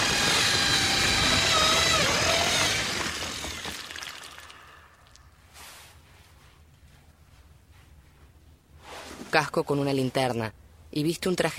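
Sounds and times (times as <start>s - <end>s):
power drill boring a hole in a wall: 0.0s - 4.9s
speech: 9.3s - 11.5s.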